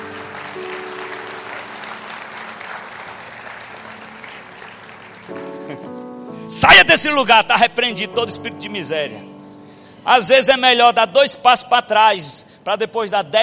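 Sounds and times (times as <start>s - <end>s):
audience applause: 0.0s - 5.9s
laughter: 5.6s - 6.0s
speech: 5.7s - 9.3s, 10.0s - 13.4s.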